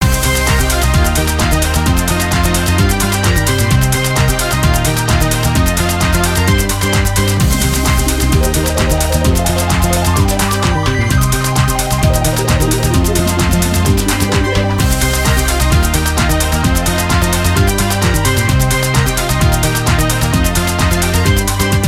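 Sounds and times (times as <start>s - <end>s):
free spin melody: 0.0s - 21.8s.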